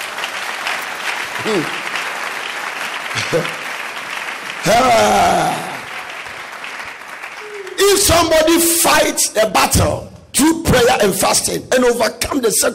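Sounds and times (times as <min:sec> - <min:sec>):
crowd cheer: 0:00.0 - 0:08.6
audience clapping: 0:00.0 - 0:09.1
speech: 0:01.4 - 0:01.8, 0:03.3 - 0:03.6, 0:04.6 - 0:05.5, 0:07.9 - 0:12.7.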